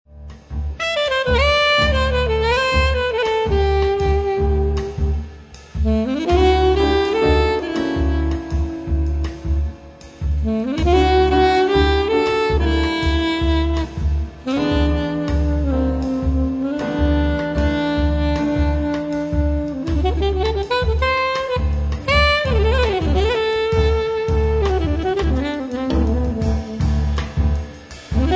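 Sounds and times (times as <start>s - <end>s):
ceremonial music: 0.4s - 28.3s.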